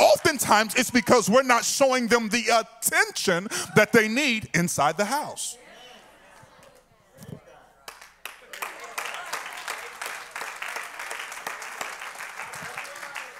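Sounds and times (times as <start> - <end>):
audience clapping: 0.0 - 1.6, 7.8 - 13.3
speech: 0.3 - 5.6.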